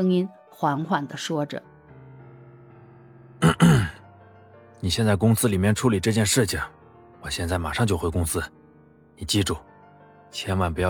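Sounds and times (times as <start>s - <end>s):
speech: 0.0s - 1.7s, 4.8s - 8.6s, 9.2s - 9.7s, 10.3s - 10.8s
person coughing: 3.4s - 4.0s.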